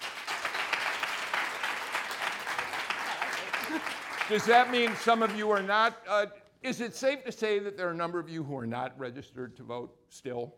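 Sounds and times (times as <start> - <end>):
audience applause: 0.0 - 5.8
speech: 3.7 - 10.5.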